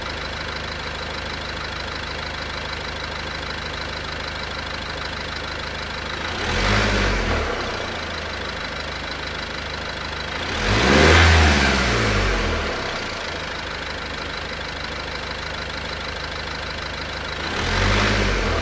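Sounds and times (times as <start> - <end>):
Renault Master F3500 dCi135 engine starting, idling, revving and shutting down: 0.0 - 18.6.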